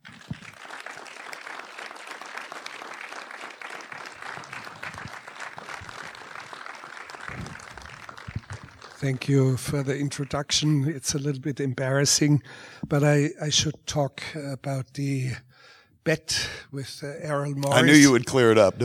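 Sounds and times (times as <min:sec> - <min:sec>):
audience applause welcoming Werner Herzog to the stage: 0:00.0 - 0:10.8
speech: 0:09.0 - 0:18.8.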